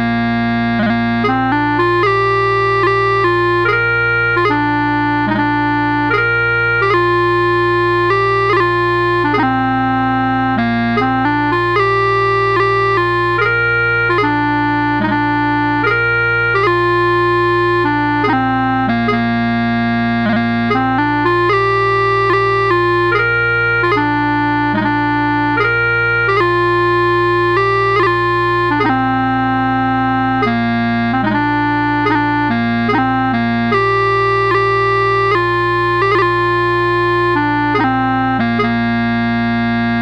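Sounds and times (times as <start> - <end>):
bagpipes playing: 0.0 - 40.0.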